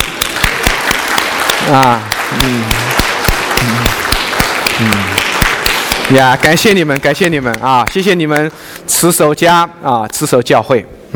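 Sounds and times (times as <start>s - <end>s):
audience applauding: 0.0s - 8.5s
speech: 1.7s - 2.8s, 3.6s - 4.0s, 4.8s - 5.2s, 6.1s - 11.1s.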